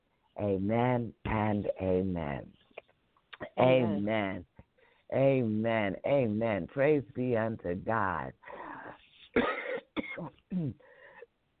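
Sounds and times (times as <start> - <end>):
speech: 0.4 - 2.6, 3.4 - 4.5, 5.1 - 8.6, 10.2 - 10.9
person coughing: 9.4 - 10.9.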